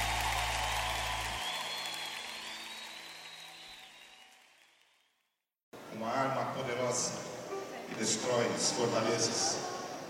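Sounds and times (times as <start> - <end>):
applause: 0.0 - 5.2
speech: 5.9 - 7.3, 7.9 - 9.7.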